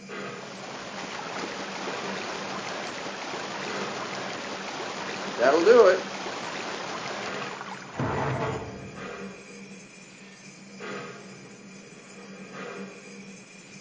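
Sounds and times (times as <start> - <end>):
Pacific locomotive: 0.0 - 9.5.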